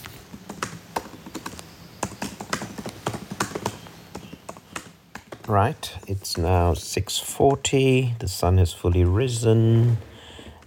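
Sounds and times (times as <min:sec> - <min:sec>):
typing on a computer keyboard while writing a novel: 0:00.0 - 0:06.6
speech: 0:05.5 - 0:10.1.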